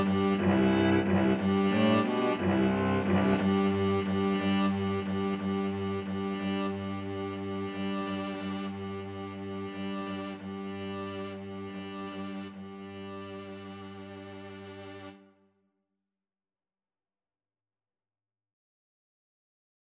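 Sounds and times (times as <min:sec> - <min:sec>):
string trio playing: 0:00.0 - 0:15.2.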